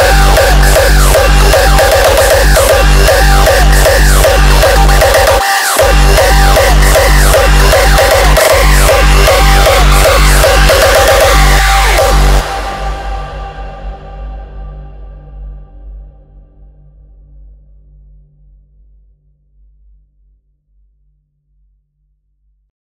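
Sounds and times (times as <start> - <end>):
hardstyle music: 0.0 - 16.0.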